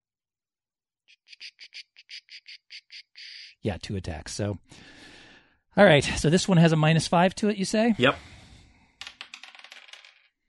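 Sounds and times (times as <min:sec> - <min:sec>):
speech: 0:03.6 - 0:05.0, 0:05.8 - 0:08.3
dice rolling on a table: 0:09.0 - 0:10.4.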